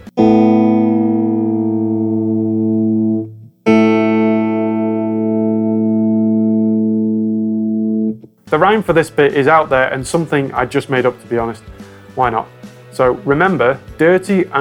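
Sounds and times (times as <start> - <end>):
open A and B guitar strings played together: 0.0 - 8.3
speech: 8.5 - 14.5.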